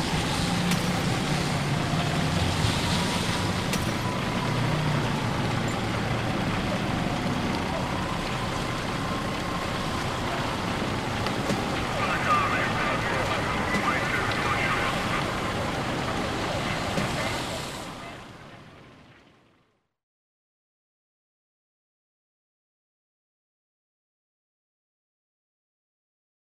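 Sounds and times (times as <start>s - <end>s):
city fire scene: 0.0s - 19.9s.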